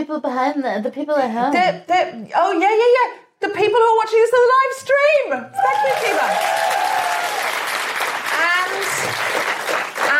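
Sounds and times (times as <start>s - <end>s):
speech: 0.0s - 6.7s
audience applause: 5.6s - 10.1s.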